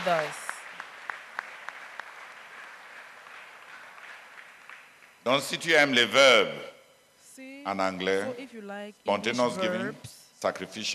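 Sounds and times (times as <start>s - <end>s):
speech: 0.0s - 0.4s, 5.2s - 6.7s, 7.4s - 10.9s
audience applause: 0.0s - 5.2s.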